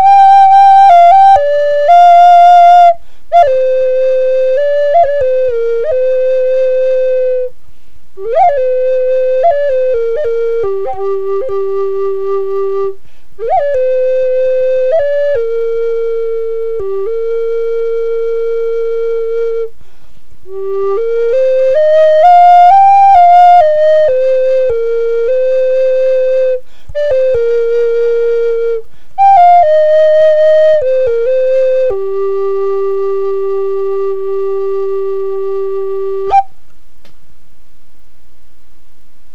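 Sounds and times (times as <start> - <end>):
flutes playing: 0.0 - 7.6, 8.2 - 19.8, 20.4 - 36.6.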